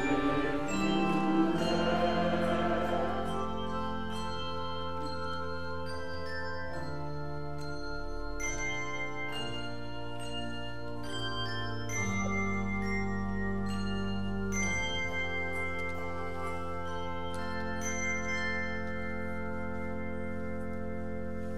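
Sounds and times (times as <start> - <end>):
mass choir singing: 0.0 - 5.3
handbells ringing: 0.0 - 21.4.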